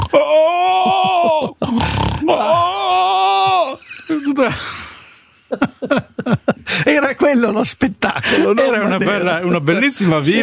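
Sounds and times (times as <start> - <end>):
man's voice groaning in imitation: 0.0 - 3.8
speech: 0.1 - 0.7, 4.4 - 4.8, 5.5 - 10.4
laughter: 0.6 - 1.7, 3.3 - 9.7
man's voice imitating a harsh rasping snore: 1.7 - 2.3.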